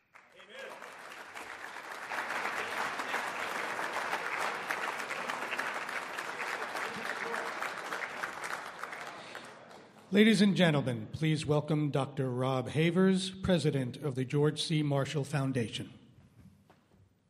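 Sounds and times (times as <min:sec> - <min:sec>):
audience applause after a singer performs: 0:00.0 - 0:10.1
speech: 0:10.1 - 0:16.0.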